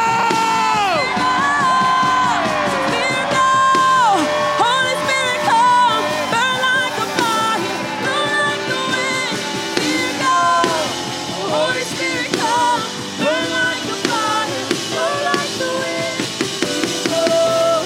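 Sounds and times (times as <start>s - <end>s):
audience shouting and cheering: 0.0s - 17.8s.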